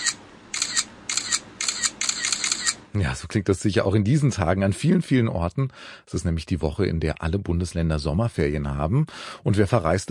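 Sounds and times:
present-day camera shutter clicking while photos are taken: 0.0 - 2.8
speech: 3.0 - 10.0.

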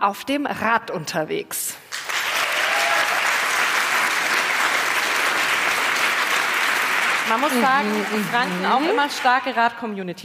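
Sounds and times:
speech: 0.0 - 2.1, 7.3 - 10.2
audience clapping in a vote: 1.9 - 10.0.

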